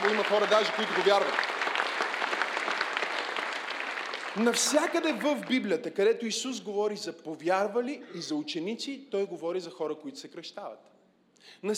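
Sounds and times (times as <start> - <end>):
audience applause: 0.0 - 5.5
speech: 0.3 - 1.5, 4.4 - 11.7.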